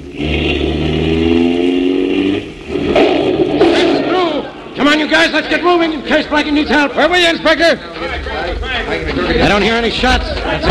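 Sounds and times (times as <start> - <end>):
squad car engine revving while accelerating hard: 0.0 - 6.4
speech: 5.2 - 8.1, 8.9 - 10.6.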